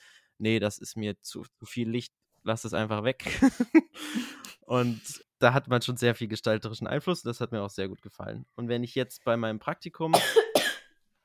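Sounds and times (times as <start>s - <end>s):
speech: 0.4s - 10.5s
laughter: 3.2s - 3.9s
cough: 10.1s - 10.9s.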